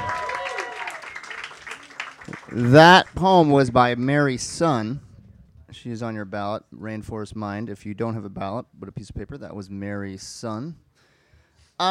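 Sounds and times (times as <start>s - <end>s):
audience applause after a poem reading: 0.0s - 3.2s
speech: 2.5s - 5.1s, 5.7s - 10.8s.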